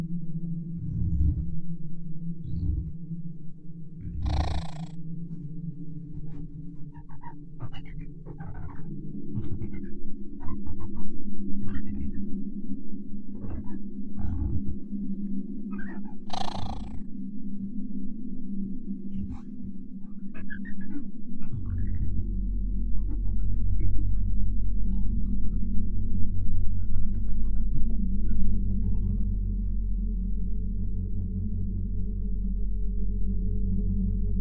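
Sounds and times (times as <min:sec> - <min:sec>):
deep steady drone of exoplanet ambience: 0:00.0 - 0:34.3
creature-like chirps and clicks: 0:04.2 - 0:04.9, 0:16.3 - 0:17.0.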